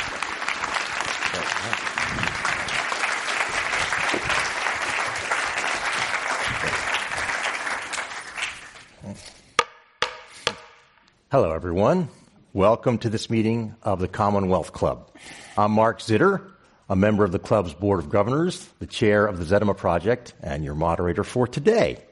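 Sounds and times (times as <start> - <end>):
audience applause welcoming two speakers at a Commonwealth Club event: 0.0 - 8.9
speech: 11.3 - 22.1.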